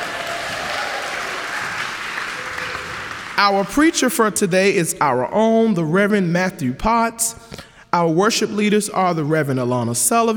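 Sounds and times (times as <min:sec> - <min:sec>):
audience applause: 0:00.0 - 0:03.4
speech: 0:03.4 - 0:10.3.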